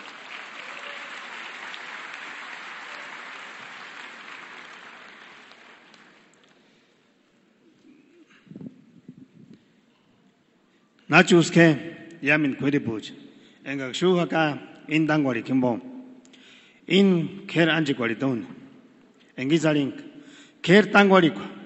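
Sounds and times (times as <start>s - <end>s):
audience applause: 0.0s - 6.4s
speech: 11.1s - 15.9s, 16.9s - 18.6s, 19.4s - 21.6s.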